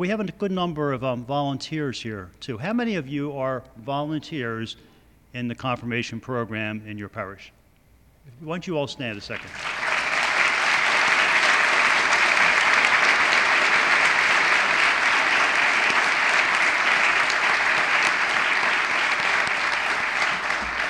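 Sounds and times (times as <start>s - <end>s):
speech: 0.0s - 7.6s, 8.2s - 9.8s
crowd applauding: 9.4s - 20.8s.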